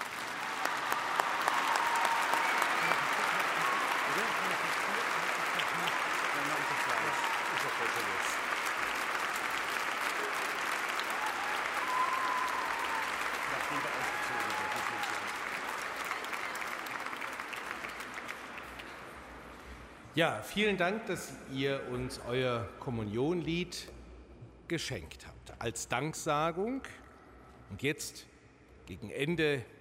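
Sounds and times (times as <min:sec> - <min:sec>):
audience clapping: 0:00.0 - 0:19.6
speech: 0:20.2 - 0:24.0, 0:24.7 - 0:27.0, 0:27.7 - 0:28.3, 0:28.9 - 0:29.7.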